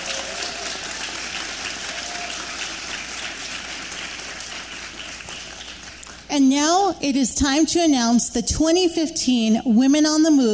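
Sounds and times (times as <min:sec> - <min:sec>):
crowd applause: 0:00.0 - 0:06.3
speech: 0:06.4 - 0:10.5.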